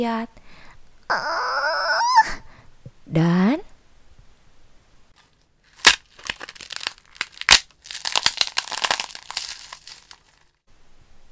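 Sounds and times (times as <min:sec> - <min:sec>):
speech: 0:00.0 - 0:00.4, 0:01.1 - 0:01.4, 0:03.1 - 0:03.6
eggshell cracking: 0:05.7 - 0:10.6.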